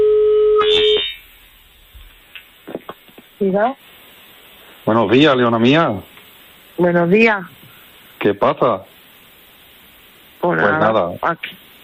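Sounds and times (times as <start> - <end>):
telephone line tone on a call from a radio studio: 0.0 - 1.2
speech: 3.4 - 4.0, 4.9 - 6.1, 6.8 - 7.6, 8.2 - 8.9, 10.4 - 11.6.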